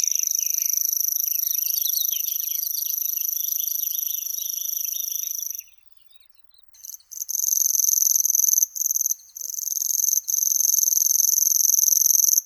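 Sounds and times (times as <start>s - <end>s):
Locustella naevia singing: 0.0s - 6.7s.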